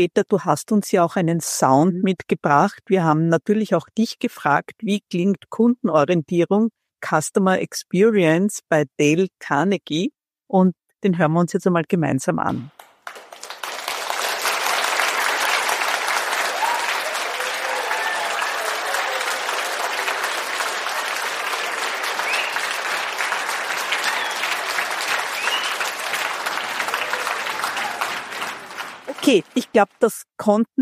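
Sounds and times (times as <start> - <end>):
speech: 0.0 - 13.2, 29.3 - 30.7
course participants and trainer applauding: 12.7 - 29.7.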